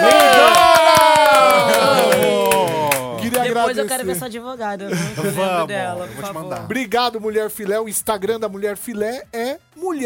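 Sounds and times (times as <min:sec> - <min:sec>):
crowd cheering and whooping: 0:00.0 - 0:03.2
round of applause: 0:00.0 - 0:03.7
speech: 0:03.7 - 0:10.0.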